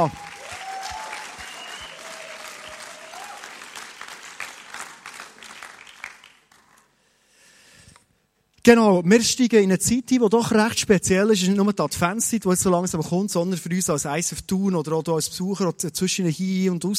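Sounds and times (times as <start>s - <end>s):
speech: 0.0s - 0.2s, 8.7s - 16.9s
audience applause: 0.0s - 6.8s.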